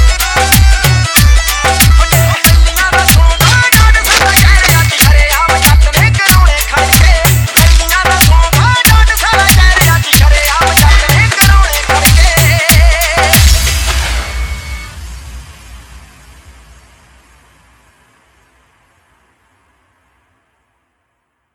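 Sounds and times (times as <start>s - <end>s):
Punjabi DJ remix song: 0.0s - 15.4s.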